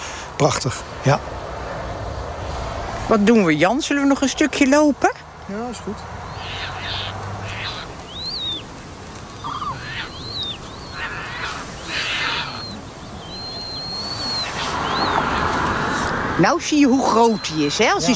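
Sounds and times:
steady hiss of wind or insects: 0:00.0 - 0:04.4, 0:05.4 - 0:18.1
speech: 0:00.4 - 0:01.4, 0:03.1 - 0:06.7, 0:16.4 - 0:18.1
young terns' high-pitched begging calls: 0:05.5 - 0:18.1.

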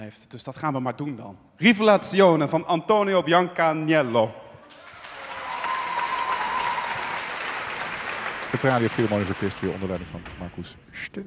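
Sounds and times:
speech: 0:00.0 - 0:04.4, 0:08.6 - 0:11.2
audience applause: 0:04.7 - 0:10.7.

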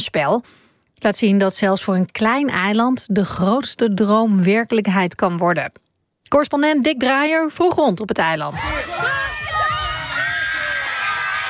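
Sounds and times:
speech: 0:00.0 - 0:09.4
mothers at the sideline cheering and shrieking with joy: 0:08.6 - 0:11.4.

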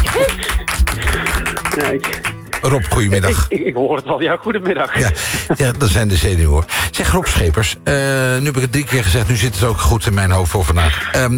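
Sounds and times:
applause: 0:00.0 - 0:03.5
laughter: 0:00.0 - 0:07.6
speech: 0:01.8 - 0:11.3.

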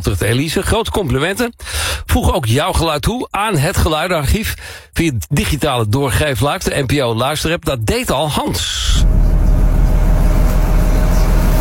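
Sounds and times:
speech: 0:00.0 - 0:09.4
ferry engine idling: 0:09.0 - 0:11.6.

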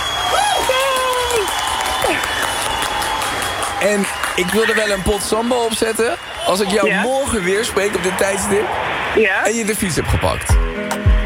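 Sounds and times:
applause: 0:00.0 - 0:08.6
speech: 0:03.8 - 0:10.7.

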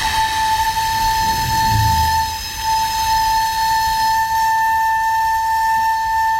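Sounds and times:
hiss: 0:00.0 - 0:06.3
low rumble: 0:00.5 - 0:03.0
600-year-old recorder playing a long high note: 0:00.9 - 0:02.4.

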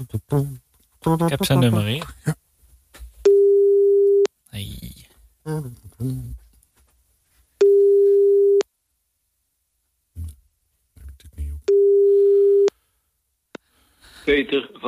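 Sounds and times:
speech: 0:00.0 - 0:02.4, 0:05.5 - 0:06.4, 0:14.3 - 0:14.8
telephone busy tone while calling a number: 0:03.3 - 0:04.3, 0:07.6 - 0:08.6, 0:11.7 - 0:12.7.

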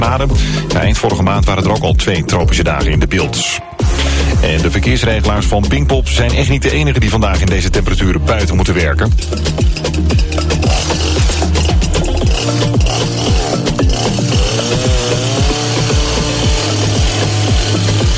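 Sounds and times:
speech: 0:00.2 - 0:11.8, 0:12.4 - 0:13.4
hedge being trimmed by gardeners: 0:03.8 - 0:18.1.

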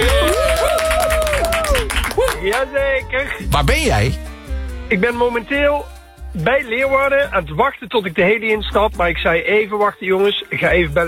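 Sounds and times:
warm applause from an audience: 0:00.0 - 0:02.7
speech: 0:02.6 - 0:04.3, 0:04.9 - 0:11.0.

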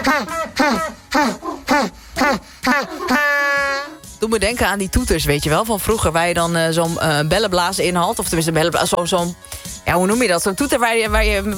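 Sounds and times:
African penguin braying: 0:00.0 - 0:04.0
speech: 0:00.1 - 0:03.6, 0:04.2 - 0:11.5.

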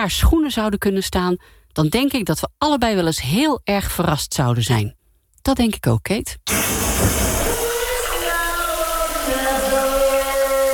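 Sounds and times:
speech: 0:00.0 - 0:07.4
shower running: 0:06.5 - 0:10.7.

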